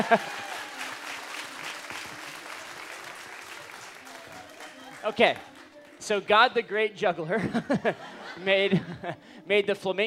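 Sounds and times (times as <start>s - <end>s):
speech: 0.0s - 0.4s, 5.1s - 10.0s
laughter: 0.0s - 0.9s, 7.2s - 9.2s
audience clapping: 0.0s - 6.2s.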